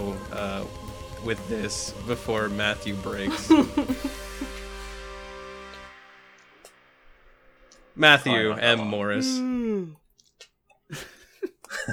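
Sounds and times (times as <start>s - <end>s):
speech: 0.2s - 4.2s, 8.0s - 10.0s, 10.9s - 11.1s
laughter: 3.2s - 4.7s, 10.9s - 11.9s
person yawning: 9.1s - 10.0s.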